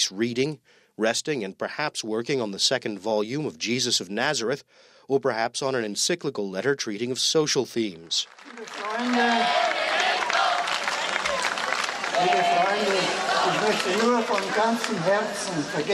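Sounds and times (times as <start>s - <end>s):
speech: 0.0s - 9.8s, 12.2s - 15.9s
scattered clapping: 8.1s - 15.9s
enthusiastic crowd cheering: 8.2s - 15.9s.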